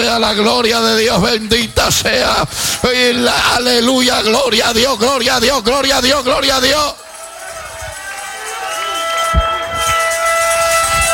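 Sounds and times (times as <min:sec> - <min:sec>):
speech: 0:00.0 - 0:07.1
shofar blast: 0:07.9 - 0:11.1.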